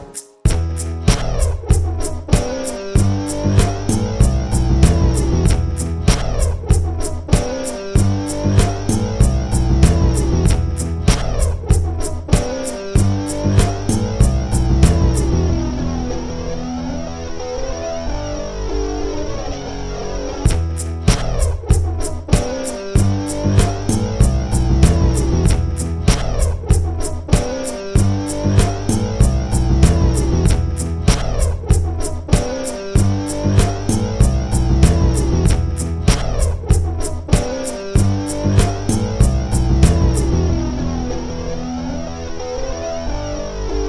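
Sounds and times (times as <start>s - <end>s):
Riji lute playing: 0.5s - 43.7s.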